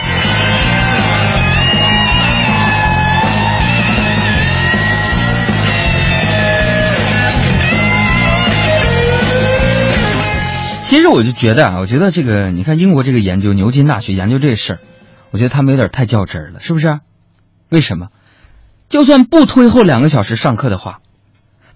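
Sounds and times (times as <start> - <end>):
audience applause: 0.0 - 10.4
speech: 11.0 - 17.1, 17.7 - 18.2, 18.9 - 21.0.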